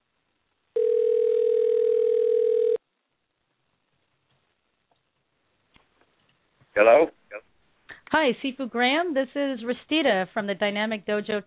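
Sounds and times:
telephone ringing tone: 0.8s - 2.8s
speech: 6.8s - 7.2s, 8.2s - 11.4s.

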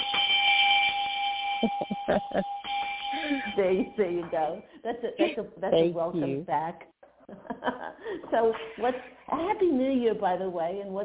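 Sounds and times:
bell rung for a caller: 0.0s - 4.8s
laughter: 1.6s - 2.4s, 7.3s - 8.3s
speech: 1.6s - 11.0s.

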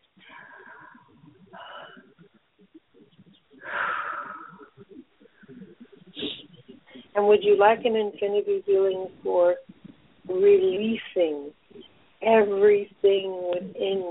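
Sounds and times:
soft sounds: 0.0s - 14.1s
deep breath: 0.2s - 2.2s, 3.6s - 7.1s
speech: 7.2s - 9.7s, 10.3s - 11.6s, 12.2s - 14.1s.

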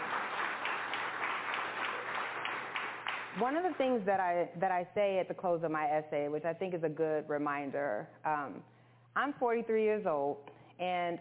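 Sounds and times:
audience clapping: 0.0s - 4.0s
speech: 3.4s - 11.2s.

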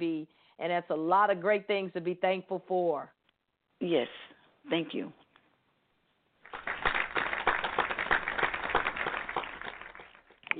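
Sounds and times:
speech: 0.0s - 3.2s, 3.8s - 5.2s
audience hand clapping: 6.4s - 10.5s.

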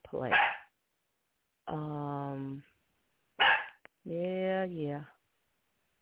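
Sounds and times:
speech: 0.1s - 0.6s, 4.1s - 5.2s
dog barking: 0.3s - 0.7s, 3.4s - 3.8s.

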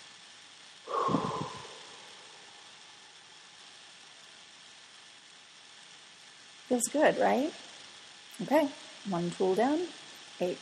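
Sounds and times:
forceful exhale: 0.9s - 2.5s
speech: 6.7s - 7.6s, 8.4s - 10.6s.

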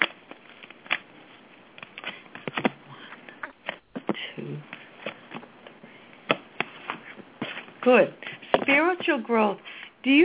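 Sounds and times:
playing cards being shuffled: 0.0s - 7.7s
speech: 7.9s - 10.2s.

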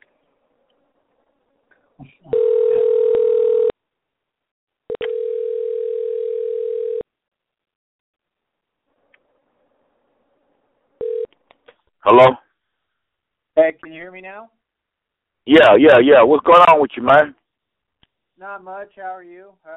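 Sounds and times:
low-pitched electronic telephone line tone: 2.3s - 3.7s, 4.9s - 7.0s, 11.0s - 11.3s
speech: 12.1s - 12.4s, 13.9s - 14.6s, 15.4s - 17.4s, 18.4s - 19.7s.

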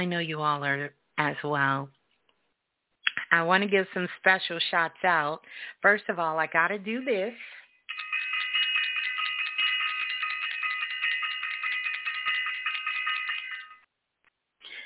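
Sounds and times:
speech: 0.0s - 2.0s, 3.3s - 7.6s
bell being rung: 7.9s - 13.9s.

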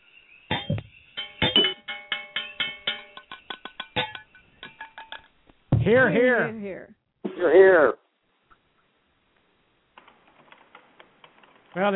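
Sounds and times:
glasses clinking in a toast: 0.5s - 5.3s
speech: 5.9s - 8.0s, 11.8s - 11.9s.

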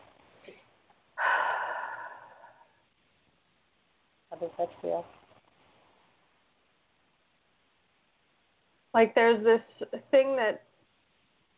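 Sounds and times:
deep breath: 1.2s - 2.9s
speech: 4.4s - 5.2s, 9.0s - 10.7s.

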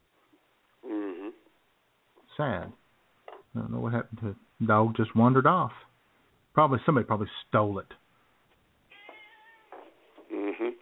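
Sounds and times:
speech: 2.4s - 2.8s, 3.5s - 5.9s, 6.6s - 8.0s
cat meowing: 8.9s - 9.8s.

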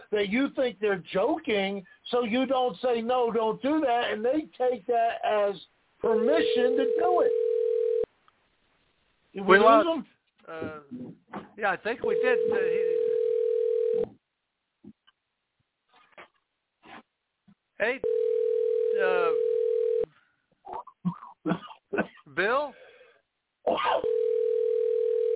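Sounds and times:
speech: 0.1s - 7.4s, 9.3s - 13.0s, 17.8s - 18.3s, 19.0s - 19.5s, 20.7s - 22.8s, 23.7s - 24.3s
person calling out a name: 5.0s - 7.5s, 12.0s - 13.0s, 18.9s - 19.4s
telephone ringing tone on the line: 6.2s - 8.1s, 12.1s - 14.1s, 18.0s - 20.1s, 24.0s - 25.3s.

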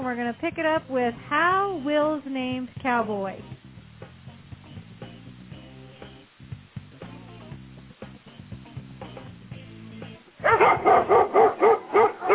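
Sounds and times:
speech: 0.1s - 3.5s
dog barking: 10.4s - 12.3s.

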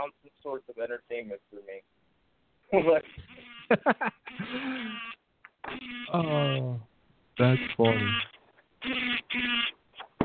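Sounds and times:
speech: 0.0s - 2.0s, 2.7s - 5.1s, 5.7s - 9.8s
laughter: 2.7s - 4.9s
mobile phone vibrating: 3.1s - 6.8s, 7.4s - 9.8s.

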